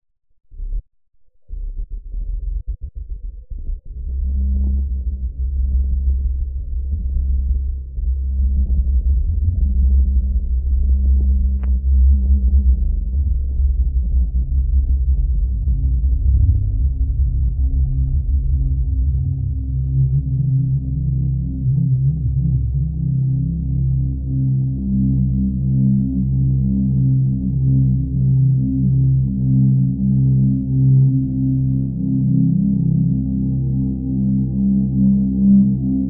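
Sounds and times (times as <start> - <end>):
drone: 1.5 - 36.0.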